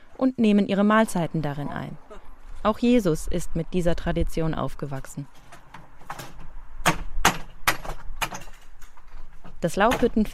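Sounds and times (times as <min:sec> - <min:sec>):
speech: 0:00.2 - 0:02.0, 0:02.6 - 0:05.4, 0:09.6 - 0:10.3
hammering nails out of wooden slats: 0:05.7 - 0:08.7.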